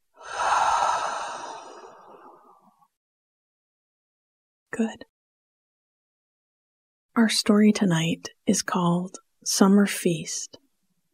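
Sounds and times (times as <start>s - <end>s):
long audible breath during a guided relaxation exercise: 0.2s - 2.7s
speech: 4.8s - 5.1s, 7.2s - 10.6s.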